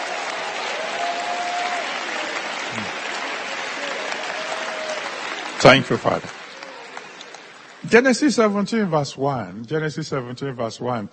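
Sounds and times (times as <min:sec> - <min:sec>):
audience applause: 0:00.0 - 0:08.3
speech: 0:05.6 - 0:06.4, 0:07.8 - 0:11.1.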